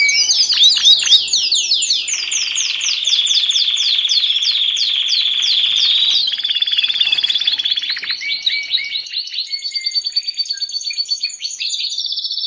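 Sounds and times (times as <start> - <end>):
Olive-backed Sunbird song, thin high rapid trill of buzzy chirps: 0.0 - 9.0.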